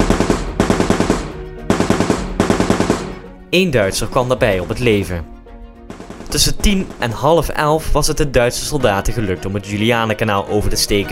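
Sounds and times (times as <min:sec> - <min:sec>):
machine gun fire: 0:00.0 - 0:03.4, 0:05.9 - 0:07.7
speech: 0:03.5 - 0:05.4, 0:06.3 - 0:11.1.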